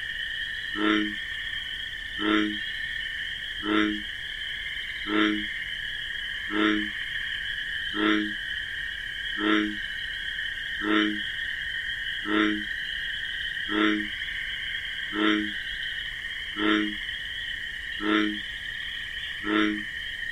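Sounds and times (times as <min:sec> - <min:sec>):
bullfrog croaking: 0:00.0 - 0:20.3
crickets chirping: 0:00.0 - 0:20.3.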